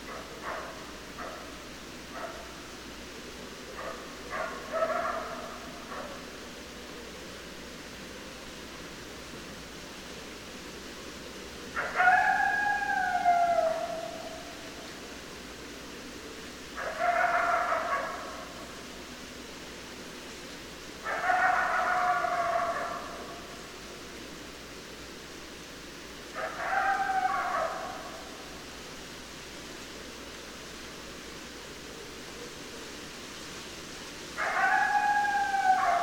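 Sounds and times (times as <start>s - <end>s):
hiss: 0.0s - 36.0s
coyote howling: 11.7s - 14.8s, 16.8s - 18.6s, 21.0s - 23.6s, 26.3s - 28.6s, 34.4s - 36.0s.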